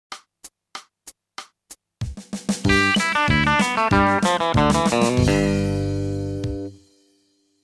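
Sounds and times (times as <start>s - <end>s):
country music: 2.6s - 6.9s.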